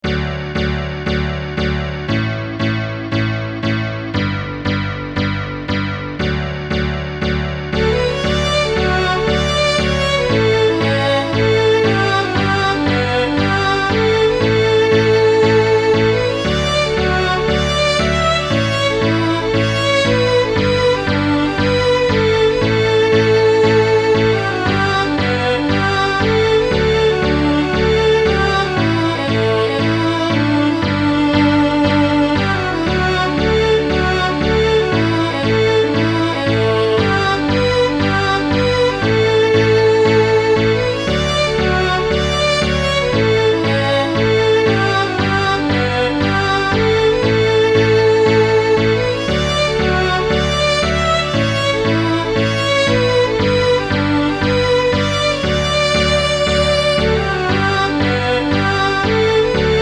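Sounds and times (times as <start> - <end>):
song with pickup: 0.0 - 59.8.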